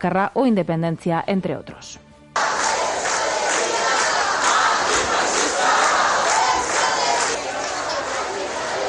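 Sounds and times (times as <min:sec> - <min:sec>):
speech: 0:00.0 - 0:02.0
crowd of young demonstrators chanting slogans at a street demonstration: 0:02.4 - 0:08.8.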